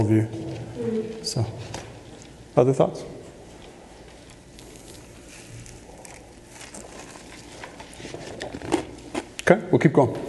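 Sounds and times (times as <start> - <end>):
speech: 0.0 - 0.4, 1.2 - 1.8, 2.6 - 3.2, 9.5 - 10.2
chewing ice: 4.2 - 9.5.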